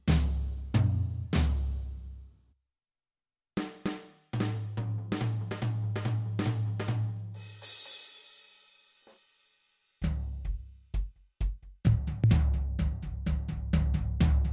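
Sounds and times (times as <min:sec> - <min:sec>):
drum: 0:00.0 - 0:02.2, 0:03.6 - 0:08.4, 0:10.0 - 0:14.5.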